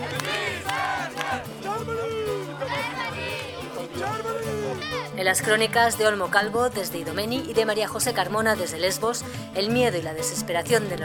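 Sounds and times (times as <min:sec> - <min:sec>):
refugees shouting in protest: 0:00.0 - 0:05.2
constant murmur of babble and movement: 0:00.0 - 0:11.0
speech: 0:05.2 - 0:11.0.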